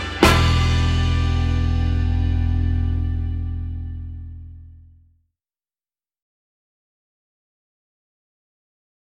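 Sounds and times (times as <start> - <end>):
break turns music: 0.0 - 5.2.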